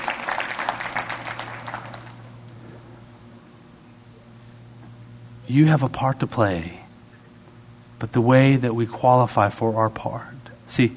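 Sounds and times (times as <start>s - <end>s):
audience hand clapping: 0.0s - 2.4s
speech: 5.5s - 6.8s, 8.0s - 10.9s.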